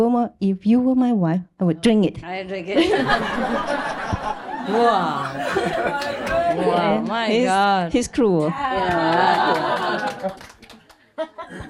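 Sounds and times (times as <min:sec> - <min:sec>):
speech: 0:00.0 - 0:10.6
laughter: 0:02.7 - 0:07.0, 0:08.6 - 0:11.6
people clapping: 0:04.2 - 0:07.4, 0:08.3 - 0:11.6.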